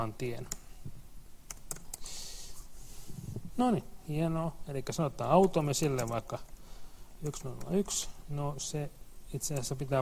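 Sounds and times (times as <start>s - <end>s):
speech: 0.0s - 0.6s, 3.6s - 6.5s, 7.2s - 10.0s
soft steady hiss: 0.0s - 10.0s
typing on a computer keyboard entering code for an automaton: 1.5s - 2.1s, 5.4s - 6.6s, 7.2s - 8.0s.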